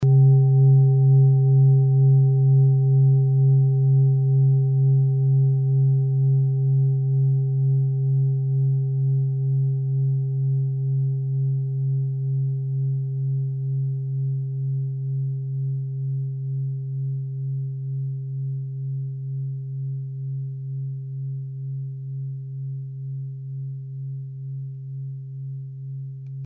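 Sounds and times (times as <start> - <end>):
set of singing bowls: 0.0 - 17.1.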